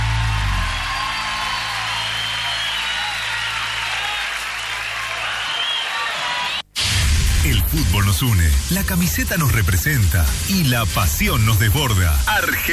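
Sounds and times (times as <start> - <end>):
crowd applause: 0.0 - 6.7
speech: 7.7 - 12.7.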